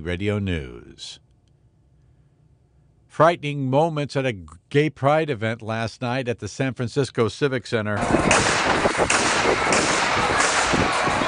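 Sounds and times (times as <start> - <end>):
speech: 0.0 - 1.2, 3.2 - 10.3
gunshots: 8.0 - 11.2.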